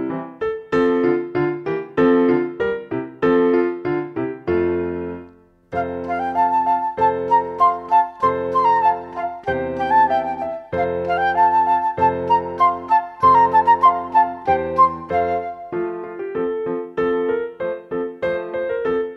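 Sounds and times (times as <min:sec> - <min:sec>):
piano accompaniment: 0:00.0 - 0:19.1
solo flute: 0:05.7 - 0:16.5.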